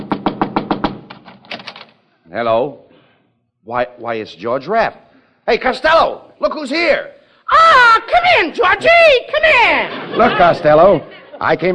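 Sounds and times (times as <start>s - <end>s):
knocking on a door: 0.0s - 1.2s
speech: 2.3s - 2.8s, 3.6s - 7.2s, 7.9s - 11.7s
laughter: 8.8s - 11.7s.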